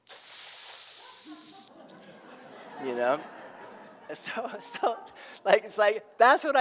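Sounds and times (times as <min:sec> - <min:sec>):
imitated sharp inhale sucking air through teeth: 0:00.0 - 0:01.7
laughter: 0:01.0 - 0:05.5
speech: 0:02.8 - 0:03.4, 0:04.1 - 0:06.5.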